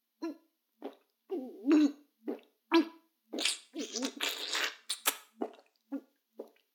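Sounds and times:
oral sex sounds: 0:01.3 - 0:06.1.

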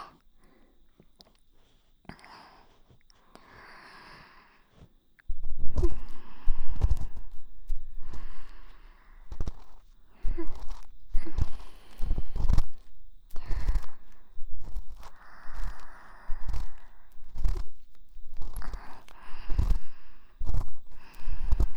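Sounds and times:
ASMR ear cleaning sounds: 0:04.7 - 0:21.7.

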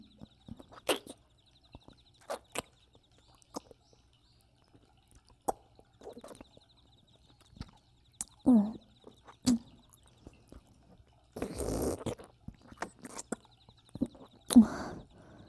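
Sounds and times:
ASMR ear licking: 0:00.5 - 0:03.8, 0:04.7 - 0:06.6, 0:09.0 - 0:14.9.

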